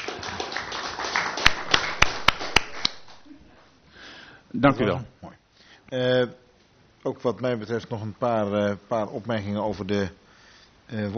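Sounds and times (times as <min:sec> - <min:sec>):
sparse applause: 0:00.0 - 0:03.3
speech: 0:04.6 - 0:05.2, 0:05.9 - 0:06.4, 0:07.0 - 0:10.2, 0:10.9 - 0:11.1.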